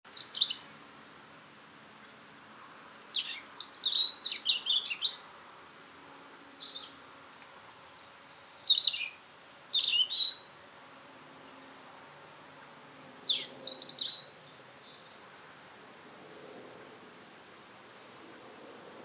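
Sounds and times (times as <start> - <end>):
European robin singing: 0.1 - 2.1, 2.8 - 5.2, 6.0 - 10.6, 12.9 - 15.3, 18.8 - 19.0.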